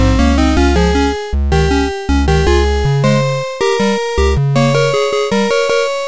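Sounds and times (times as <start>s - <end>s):
bassline: 0.0s - 5.1s.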